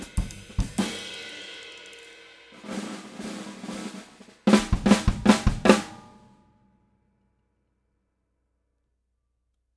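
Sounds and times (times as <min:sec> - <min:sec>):
drum with poplar wood hoops: 0:00.0 - 0:06.2.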